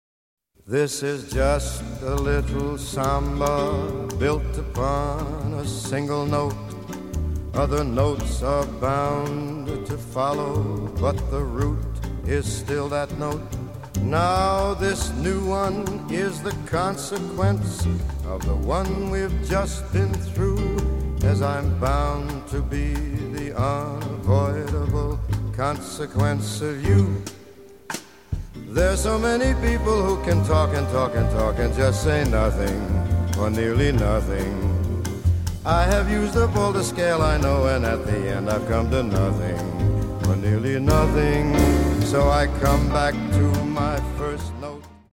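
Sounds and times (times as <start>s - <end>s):
samba music: 1.4s - 45.1s.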